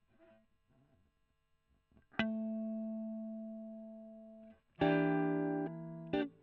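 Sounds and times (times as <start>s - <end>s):
electric guitar: 2.1s - 6.4s.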